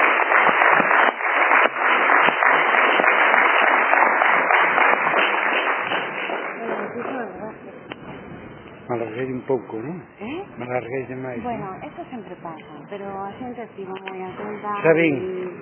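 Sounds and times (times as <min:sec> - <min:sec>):
audience applauding: 0:00.0 - 0:07.2
speech: 0:09.0 - 0:15.6.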